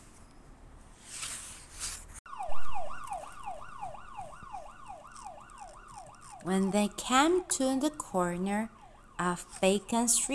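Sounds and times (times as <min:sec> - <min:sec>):
police car siren: 0:02.3 - 0:10.3
speech: 0:06.4 - 0:10.3.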